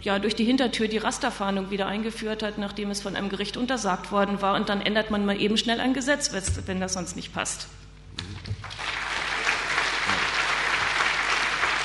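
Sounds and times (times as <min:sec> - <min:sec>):
speech: 0:00.0 - 0:07.8
audience applause: 0:08.5 - 0:11.8.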